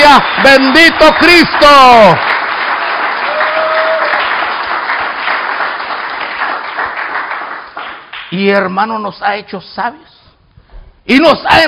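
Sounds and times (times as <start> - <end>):
audience clapping: 0.0 - 8.4
speech: 0.2 - 2.3, 8.3 - 10.2, 11.1 - 11.6.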